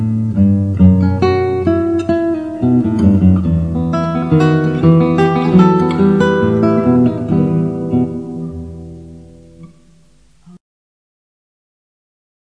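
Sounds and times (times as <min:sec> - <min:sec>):
minuet: 0:00.0 - 0:09.8.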